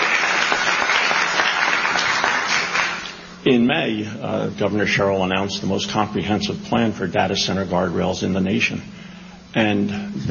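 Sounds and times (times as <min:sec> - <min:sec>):
audience applauding: 0:00.0 - 0:03.3
speech: 0:03.4 - 0:10.2.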